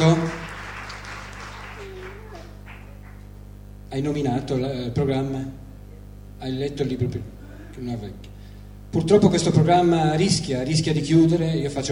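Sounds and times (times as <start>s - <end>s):
applause: 0.0s - 3.4s
speech: 3.9s - 5.6s, 6.4s - 8.3s, 8.9s - 11.9s.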